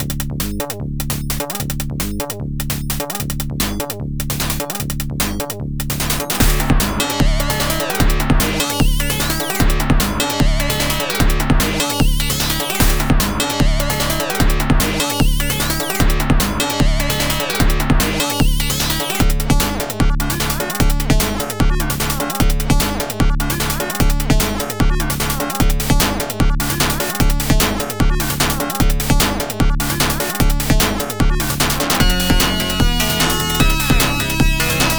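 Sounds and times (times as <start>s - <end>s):
FM acid synth music: 0.0s - 34.9s.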